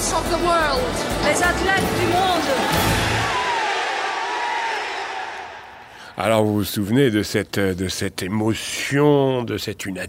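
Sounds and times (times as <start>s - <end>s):
huge stadium crowd applauding and cheering athletes: 0.0s - 6.2s
speech: 0.3s - 3.0s, 6.2s - 10.0s.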